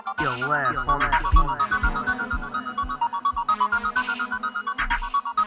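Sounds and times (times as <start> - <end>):
instrumental music: 0.2 - 5.3.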